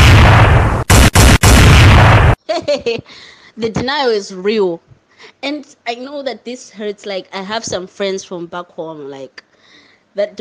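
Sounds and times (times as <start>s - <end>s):
bomb explosion sound effect: 0.0s - 2.4s
speech: 2.7s - 9.5s, 10.2s - 10.3s.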